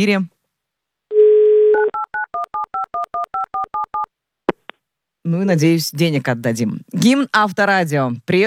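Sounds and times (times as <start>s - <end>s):
speech: 0.0s - 0.3s, 5.3s - 8.4s
telephone ringing tone: 1.1s - 4.1s.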